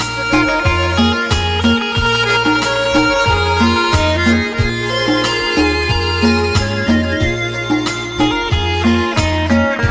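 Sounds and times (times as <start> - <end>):
Thai dance ringtone: 0.1 - 9.7.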